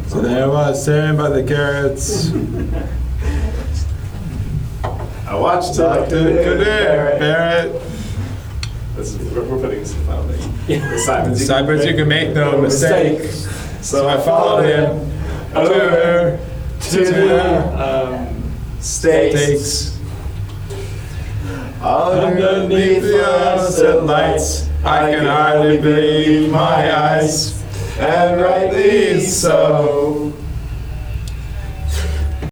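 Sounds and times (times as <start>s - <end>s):
a cappella singing: 0.1s - 3.9s, 5.2s - 9.8s, 10.7s - 20.2s, 21.3s - 32.4s
laughter: 1.5s - 4.6s, 10.2s - 13.7s.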